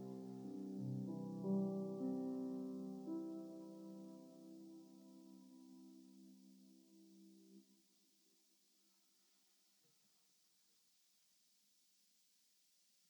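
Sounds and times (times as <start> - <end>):
classical prelude in C major: 0.0 - 6.7.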